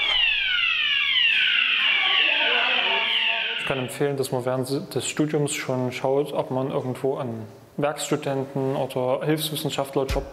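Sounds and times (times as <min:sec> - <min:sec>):
fire alarm blaring: 0:00.0 - 0:04.1
speech: 0:03.7 - 0:10.3.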